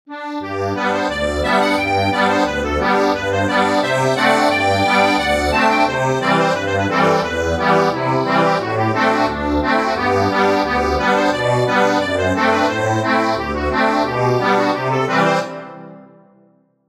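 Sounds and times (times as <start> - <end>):
accordion: 0.1 - 16.4.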